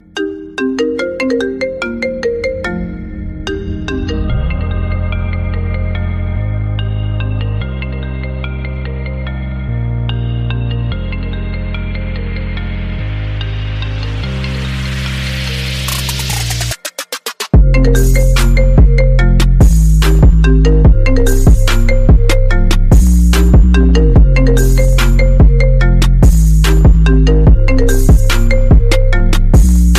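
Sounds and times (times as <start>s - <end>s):
iPhone 6 ringtone music: 0.0s - 29.9s.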